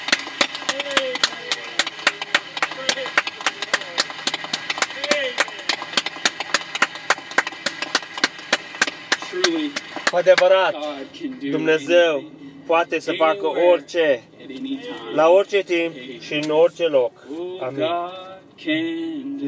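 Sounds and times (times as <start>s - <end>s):
audience applauding: 0.0s - 10.7s
speech: 9.4s - 19.4s.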